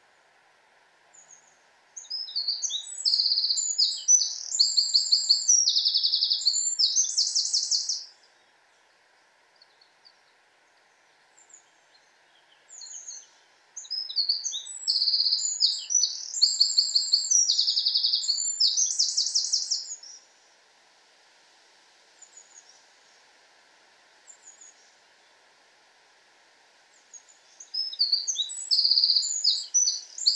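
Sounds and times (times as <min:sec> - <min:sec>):
Eurasian wren song: 0:01.2 - 0:08.5, 0:09.6 - 0:20.3, 0:27.0 - 0:30.3.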